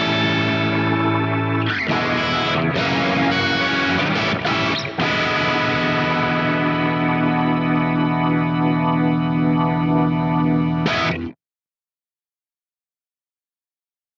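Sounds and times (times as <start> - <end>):
light organ playing: 0.0 - 11.3.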